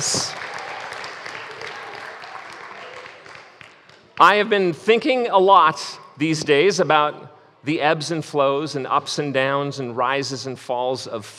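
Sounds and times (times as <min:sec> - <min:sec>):
audience applause: 0:00.0 - 0:04.2
speech: 0:04.2 - 0:11.3.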